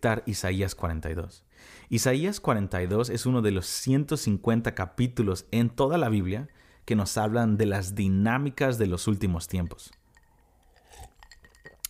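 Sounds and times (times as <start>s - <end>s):
speech: 0.0s - 10.0s
sipping coffee from a cup: 10.1s - 11.8s.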